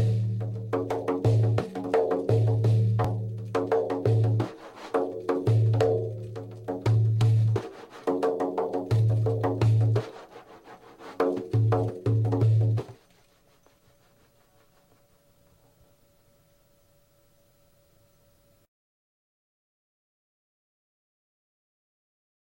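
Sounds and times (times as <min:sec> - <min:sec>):
daira frame drum music: 0:00.0 - 0:15.7.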